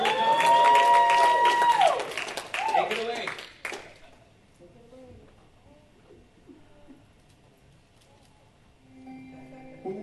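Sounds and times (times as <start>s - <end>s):
crowd cheering: 0.0s - 3.3s
crowd applause: 0.0s - 4.1s.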